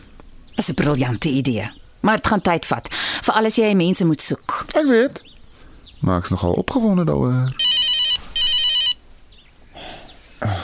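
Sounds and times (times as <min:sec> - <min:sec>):
speech: 0:00.6 - 0:05.3, 0:06.0 - 0:07.6
telephone ringing with an incoming call: 0:07.6 - 0:09.0.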